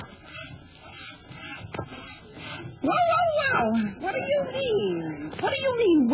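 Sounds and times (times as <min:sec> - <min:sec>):
someone sawing wood: 0:00.0 - 0:03.9
speech: 0:02.8 - 0:06.1.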